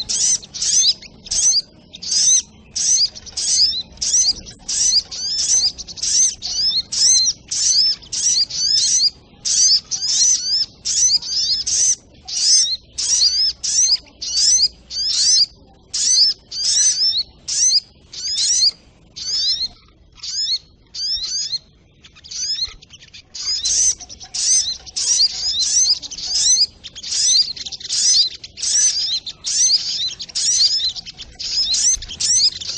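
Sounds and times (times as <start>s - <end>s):
Little Spiderhunter singing: 0.0s - 32.7s.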